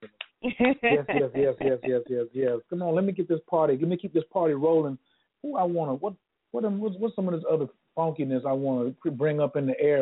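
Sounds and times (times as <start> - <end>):
hand claps from one person: 0.0 - 2.1
speech: 0.4 - 10.0
laughter: 0.5 - 5.0, 6.6 - 10.0.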